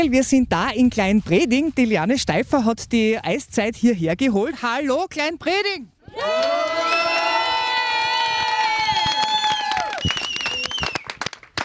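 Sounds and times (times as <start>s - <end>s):
speech: 0.0s - 6.7s
village crowd cheering and shouting: 6.0s - 10.1s
clapping: 6.3s - 11.6s.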